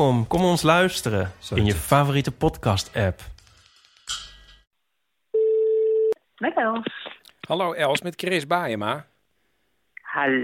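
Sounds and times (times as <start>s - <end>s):
speech: 0.0s - 3.4s, 6.4s - 9.1s, 10.1s - 10.4s
telephone ringing tone on outgoing call: 5.4s - 6.2s.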